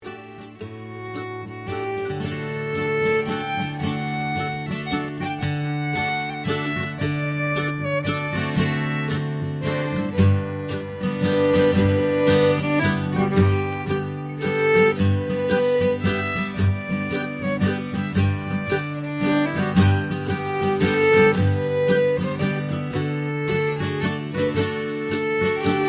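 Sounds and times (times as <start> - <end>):
string band playing a waltz: 0.0 - 25.8.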